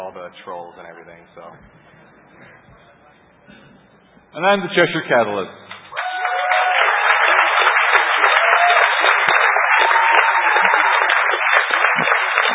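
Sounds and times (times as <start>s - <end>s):
speech: 0.3s - 2.8s, 4.4s - 5.6s
audience applause: 5.9s - 12.5s.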